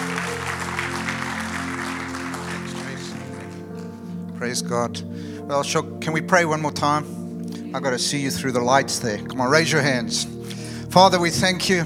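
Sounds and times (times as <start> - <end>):
audience hand clapping: 0.0 - 4.2
sustained low musical drone: 0.0 - 11.8
speech: 4.4 - 11.8.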